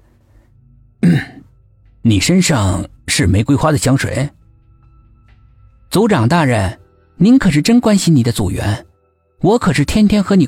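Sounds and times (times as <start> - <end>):
person coughing: 1.0 - 1.5
speech: 2.0 - 4.4, 5.9 - 10.4.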